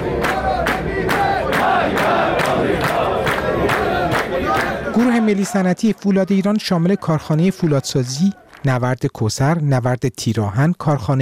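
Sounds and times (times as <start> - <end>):
protesting workers chanting slogans: 0.0 - 8.7
speech: 5.3 - 11.2.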